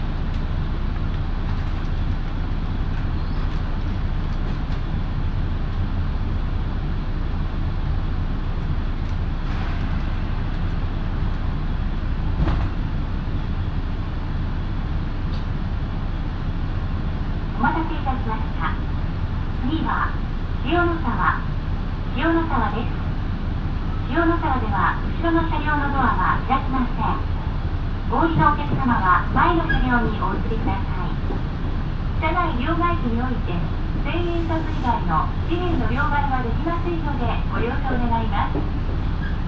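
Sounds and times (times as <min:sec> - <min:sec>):
local train on the Minobu Line running: 0:00.0 - 0:39.4
people talking on the train: 0:17.6 - 0:18.8, 0:19.6 - 0:21.4, 0:24.1 - 0:27.3, 0:28.1 - 0:31.2, 0:32.2 - 0:38.6.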